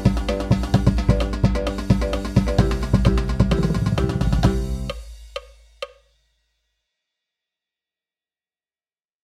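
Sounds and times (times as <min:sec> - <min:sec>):
marching percussion: 0:00.0 - 0:06.0.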